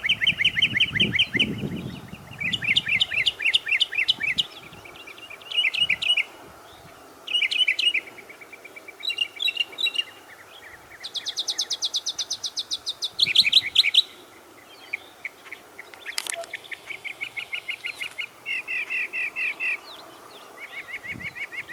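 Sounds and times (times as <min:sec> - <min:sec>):
bird song chirps and trills: 0:00.0 - 0:21.7.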